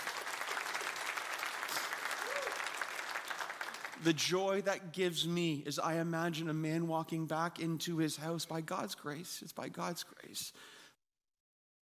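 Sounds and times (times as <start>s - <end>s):
audience applause: 0.0s - 4.1s
speech: 4.0s - 10.8s.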